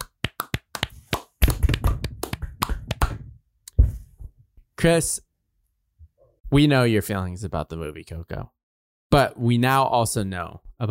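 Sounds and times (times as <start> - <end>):
hands clapping: 0.0 - 3.3
speech: 4.8 - 5.3, 6.5 - 10.8.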